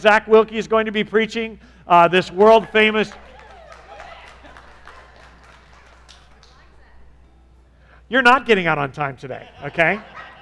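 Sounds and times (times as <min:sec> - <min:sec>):
speech: 0:00.0 - 0:03.3, 0:08.1 - 0:10.3
audience clapping: 0:02.3 - 0:07.1
laughter: 0:02.4 - 0:07.0, 0:09.2 - 0:10.4.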